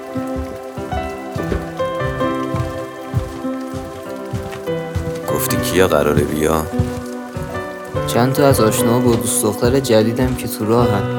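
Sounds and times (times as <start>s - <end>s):
rain falling on a surface: 0.0s - 11.1s
speech: 5.4s - 6.9s, 8.1s - 11.1s.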